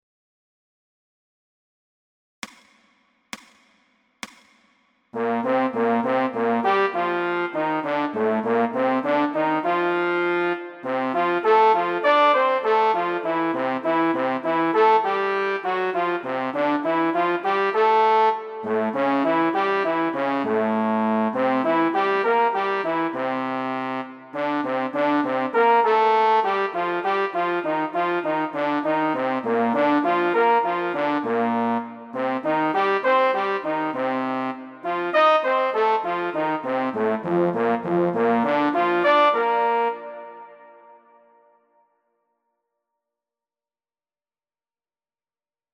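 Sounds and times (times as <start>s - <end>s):
fast trombone study: 5.2s - 40.8s.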